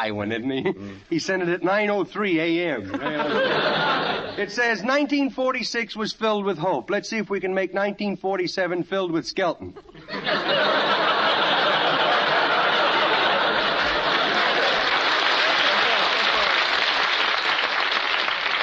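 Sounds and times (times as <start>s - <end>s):
speech: 0.0s - 10.9s
laughter: 0.2s - 1.1s, 2.6s - 4.9s, 9.6s - 17.0s
studio audience applause: 11.0s - 18.6s.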